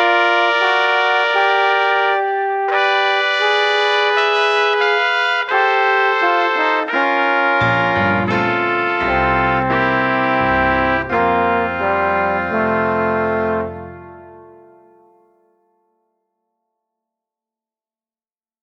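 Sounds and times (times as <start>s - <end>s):
trumpet signal with piano: 0.0s - 14.9s.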